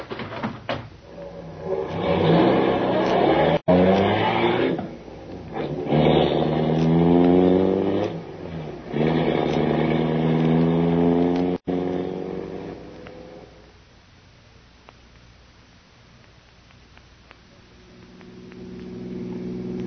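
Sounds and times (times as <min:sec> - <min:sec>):
car engine accelerating during pursuit: 0:01.1 - 0:13.6, 0:17.8 - 0:19.8.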